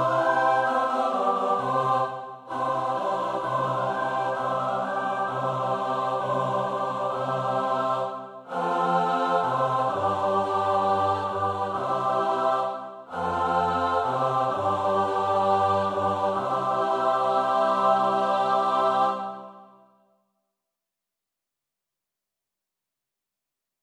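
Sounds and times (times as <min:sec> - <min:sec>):
SATB choir singing a carol: 0:00.0 - 0:19.9.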